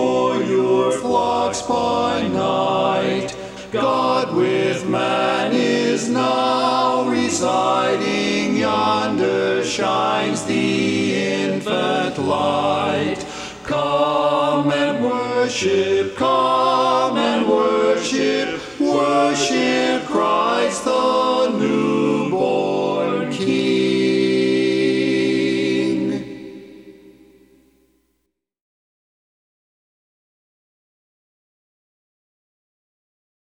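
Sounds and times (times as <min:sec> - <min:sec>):
baritone singing a cappella: 0:00.0 - 0:26.3.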